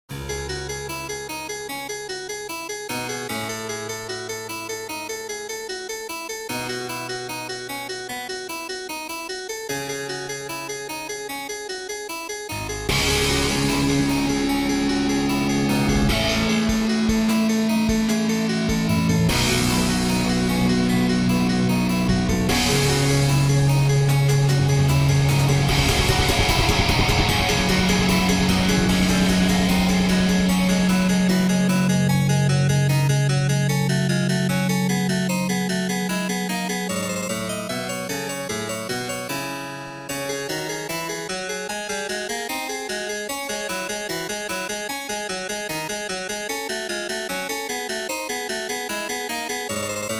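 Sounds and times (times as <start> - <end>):
harpsichord: 0.1 - 50.1.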